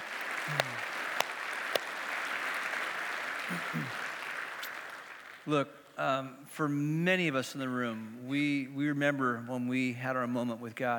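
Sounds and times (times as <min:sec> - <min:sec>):
crowd applauding: 0:00.0 - 0:05.5
low voice murmuring: 0:00.5 - 0:00.9, 0:03.5 - 0:04.0
speech: 0:00.5 - 0:00.9, 0:05.5 - 0:10.9.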